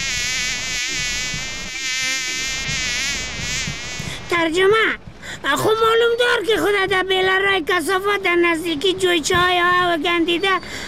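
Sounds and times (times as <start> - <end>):
fly buzzing: 0.0 - 4.6
speech: 4.3 - 10.8.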